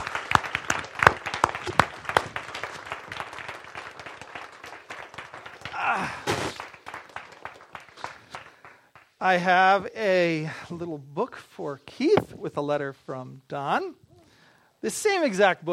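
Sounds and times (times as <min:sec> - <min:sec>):
crowd applause: 0:00.0 - 0:09.1
brief rising voice or cheer: 0:05.6 - 0:06.7
speech: 0:09.2 - 0:14.0, 0:14.8 - 0:15.7.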